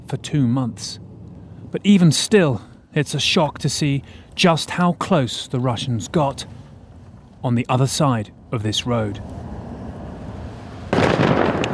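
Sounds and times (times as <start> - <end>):
low noise: 0.0 - 11.1
speech: 0.1 - 1.0, 1.7 - 6.6, 7.4 - 9.4
controlled demining blast in Ukraine near a frontline city: 10.9 - 11.7.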